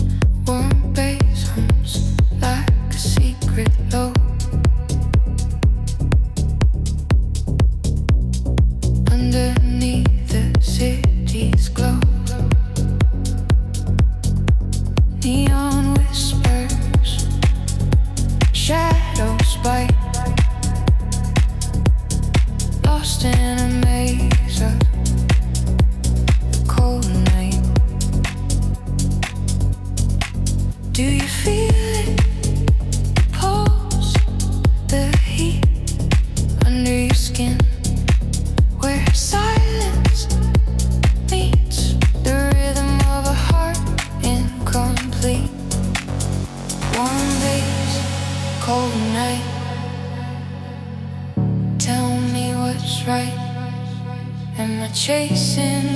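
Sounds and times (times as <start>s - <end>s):
warm bass: 0.0s - 55.9s.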